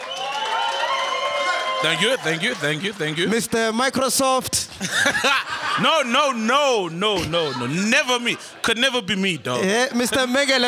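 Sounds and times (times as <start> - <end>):
applause: 0.0 - 4.1
speech: 1.8 - 10.6
laughter: 4.6 - 10.3.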